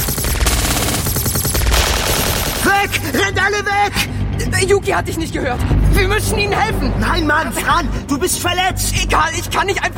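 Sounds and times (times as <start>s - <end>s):
automatic gunfire: 0.0s - 3.0s
speech: 2.8s - 9.9s.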